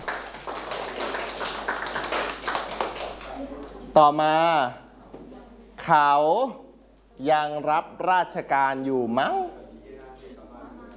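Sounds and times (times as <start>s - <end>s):
class clapping hands for a classmate: 0.0s - 3.8s
speech: 4.0s - 4.8s, 5.8s - 6.6s, 7.2s - 9.6s.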